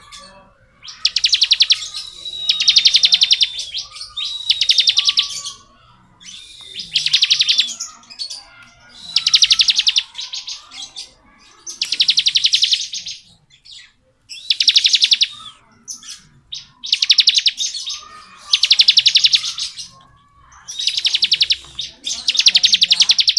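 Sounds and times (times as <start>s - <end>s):
bar-winged prinia trilling song: 0.0s - 23.3s.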